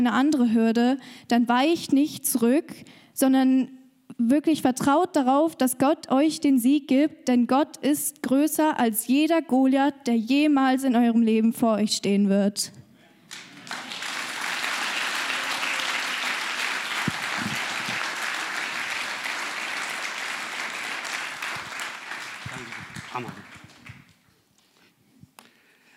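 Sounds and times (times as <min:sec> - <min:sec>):
speech: 0:00.0 - 0:13.9
audience applause: 0:13.3 - 0:24.2.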